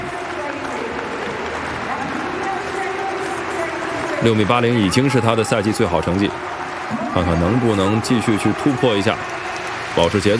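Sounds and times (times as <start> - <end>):
stadium crowd rhythmic clapping: 0.0 - 10.3
speech: 4.2 - 9.4, 10.0 - 10.3.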